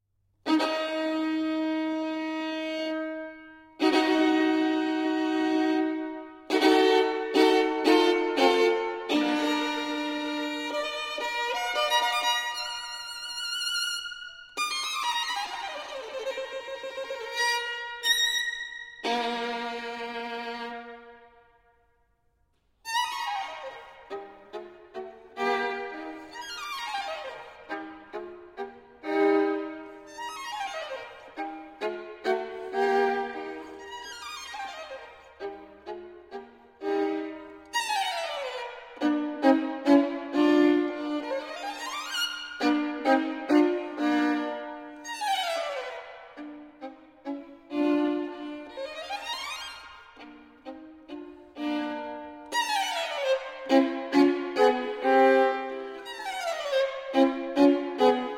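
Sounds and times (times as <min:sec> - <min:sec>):
solo violin caprice in E-flat major: 0:00.4 - 0:58.3.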